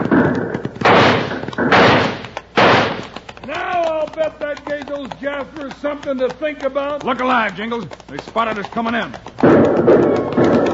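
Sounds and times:
six-gun revolver shots in a Western gunfight: 0:00.0 - 0:03.2
small thumps: 0:00.0 - 0:10.7
speech: 0:04.2 - 0:10.4.

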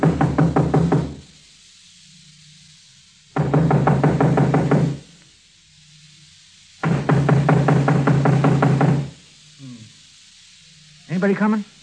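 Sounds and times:
rapid firm knocking on a door: 0:00.0 - 0:01.2, 0:03.4 - 0:05.0, 0:06.8 - 0:09.2
speech: 0:11.2 - 0:11.7.

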